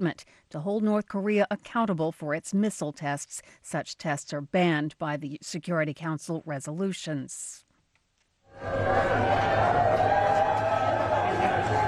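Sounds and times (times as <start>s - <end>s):
speech: 0.0s - 7.6s, 8.6s - 10.4s
crowd cheering for U.S. President Joe Biden in Nantucket, Massachusetts: 8.5s - 11.8s.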